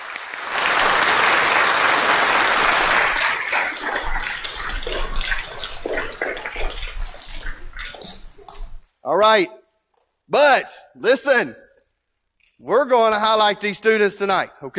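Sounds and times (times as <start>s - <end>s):
congregation applauding: 0.0s - 6.3s
speech: 9.1s - 9.6s, 10.3s - 11.6s, 12.6s - 14.7s.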